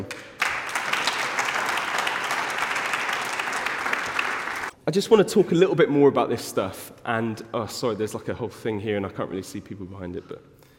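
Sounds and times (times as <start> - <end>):
audience applause: 0.0 - 4.7
speech: 4.9 - 10.6.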